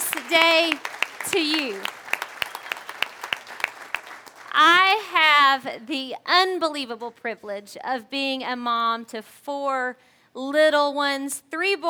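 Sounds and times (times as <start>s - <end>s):
audience applauding mothers: 0.0s - 4.6s
speech: 0.3s - 1.9s, 4.6s - 11.8s.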